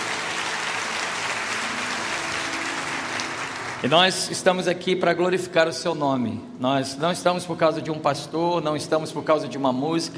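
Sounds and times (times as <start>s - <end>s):
audience applauding: 0.0s - 4.4s
speech: 3.8s - 10.1s.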